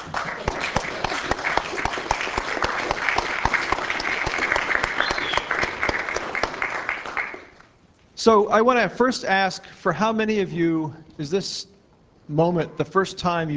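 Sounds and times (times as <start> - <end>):
audience applause: 0.0 - 7.6
speech: 8.2 - 11.7, 12.3 - 13.5.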